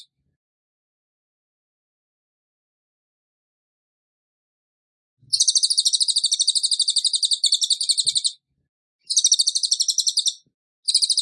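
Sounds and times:
bird song of high evenly spaced chirps: 5.2 - 8.4, 9.0 - 11.1.

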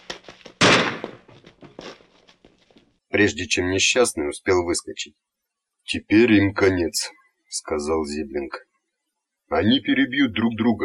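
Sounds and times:
scattered pops and clatter: 0.0 - 3.0
gunshot aboard a ship: 0.6 - 1.9
speech: 3.1 - 5.3, 5.9 - 8.7, 9.5 - 10.8.

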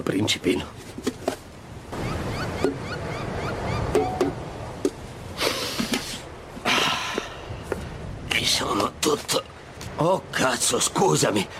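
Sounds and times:
speech: 0.0 - 0.8, 9.1 - 11.5
Pacific Ocean surf washing onto the shore: 1.4 - 11.5.

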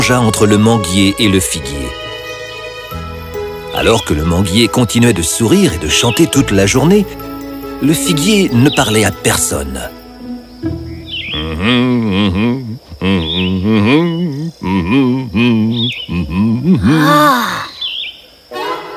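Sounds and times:
speech: 0.1 - 2.0, 3.8 - 10.0, 11.5 - 17.7
high chirps: 2.2 - 16.9
voice imitating a swarm of bees buzzing: 11.2 - 17.7.

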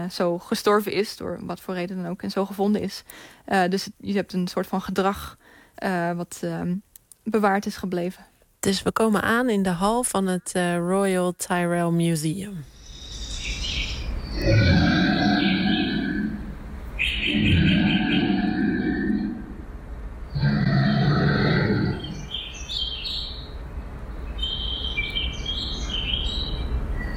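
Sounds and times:
speech: 0.0 - 12.8
high chirping calls: 12.7 - 16.4, 17.0 - 18.8, 24.3 - 27.1
reconstructed prehistoric creature growl in a museum hall: 14.3 - 19.7, 20.3 - 22.3.

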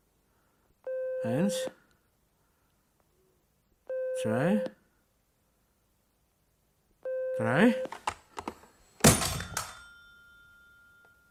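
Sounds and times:
speech: 1.2 - 1.8, 4.2 - 4.8, 7.4 - 8.1
telephone ringing: 9.1 - 11.2.

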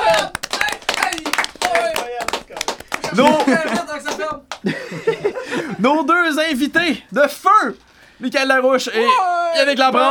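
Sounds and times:
audience applause: 0.0 - 4.3
laughter: 3.0 - 5.9
speech: 3.1 - 4.8, 5.8 - 10.1.

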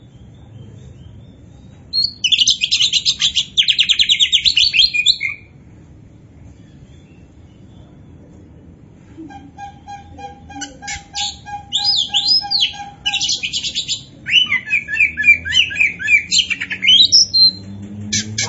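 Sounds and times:
Oriental magpie-robin singing: 0.0 - 5.5, 9.6 - 18.4.

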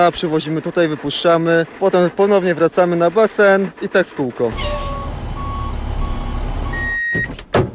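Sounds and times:
speech: 0.0 - 4.8
water tank truck engine rumbling: 0.0 - 7.7
water tank truck reversing alarm beeps: 4.6 - 7.4.

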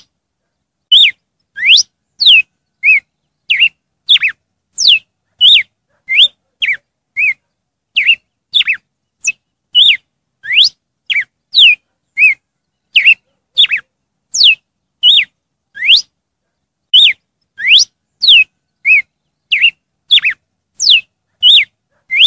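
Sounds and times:
red-cowled cardinal song: 0.9 - 7.4, 8.0 - 16.1, 16.9 - 22.2.

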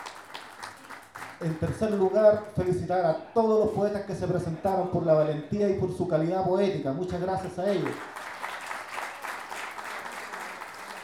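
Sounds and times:
audience applause at a pie forzado poetry tournament: 0.0 - 2.6, 7.6 - 11.0
speech: 1.4 - 8.1.

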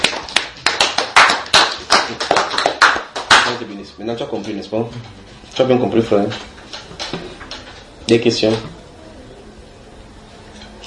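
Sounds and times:
audience applause: 0.0 - 3.6
speech: 4.0 - 6.5, 8.1 - 8.8.

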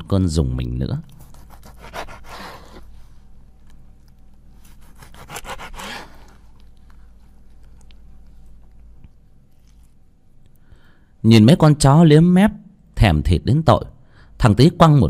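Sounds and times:
speech: 0.1 - 1.2, 11.2 - 15.0
knife scraping on a chopping board: 1.1 - 2.9, 4.6 - 6.4.

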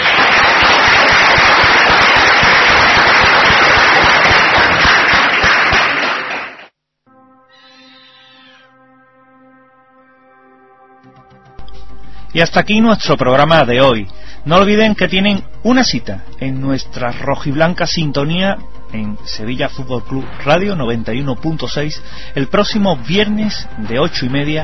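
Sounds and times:
audience applause: 0.0 - 6.7
speech: 12.4 - 24.6.

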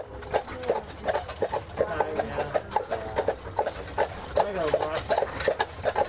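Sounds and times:
people talking: 0.0 - 3.3, 4.3 - 5.2
horse hooves clip-clopping on a street on Mackinac Island: 0.0 - 6.0.

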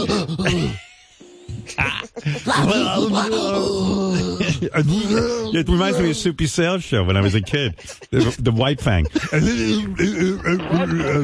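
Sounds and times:
laughter: 0.0 - 11.2
man imitating upset heavy breathing and grunting: 2.0 - 6.3, 9.3 - 10.9
speech: 2.2 - 11.2.

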